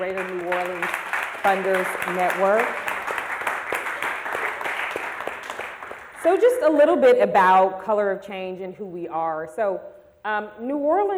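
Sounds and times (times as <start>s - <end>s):
speech: 0.0s - 2.9s, 6.2s - 11.1s
audience applause: 0.0s - 6.5s.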